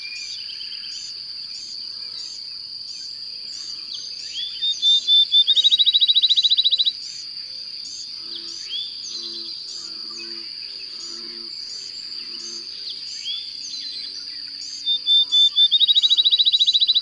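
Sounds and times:
bird song: 0.0s - 17.0s.

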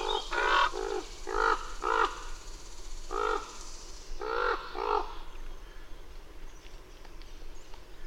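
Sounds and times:
bird cawing hoarsely: 0.0s - 2.4s, 3.1s - 3.6s, 4.2s - 5.3s.

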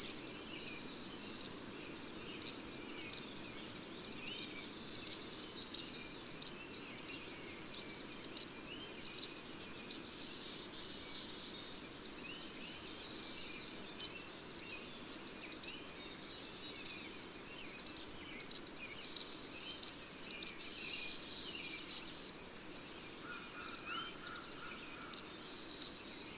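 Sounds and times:
bird chirping: 0.0s - 26.3s.

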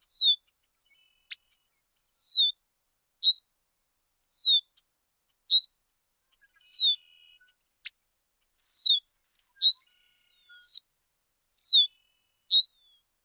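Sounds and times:
bird song of high descending whistled phrases: 0.0s - 1.5s, 2.1s - 2.6s, 3.2s - 3.5s, 4.3s - 4.8s, 5.5s - 5.8s, 6.4s - 7.6s, 8.6s - 10.8s, 11.5s - 13.0s.

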